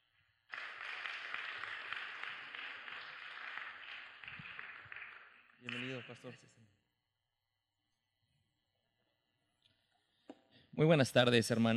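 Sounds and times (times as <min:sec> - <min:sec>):
audience applause: 0:00.5 - 0:06.1
speech: 0:05.6 - 0:06.8, 0:10.8 - 0:11.7.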